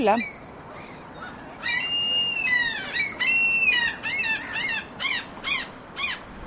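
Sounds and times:
gulls calling: 0.0s - 6.4s
wind noise: 5.2s - 6.4s.

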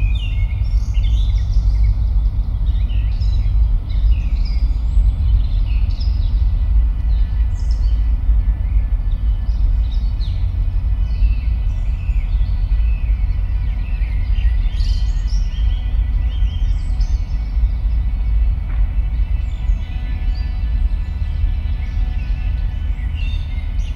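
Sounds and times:
heavy low rumble in a forest: 0.0s - 23.9s.

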